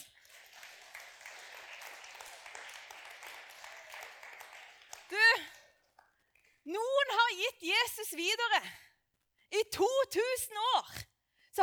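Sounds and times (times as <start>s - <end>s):
audience applause: 0.0s - 6.1s
speech: 6.7s - 8.9s, 9.6s - 11.0s.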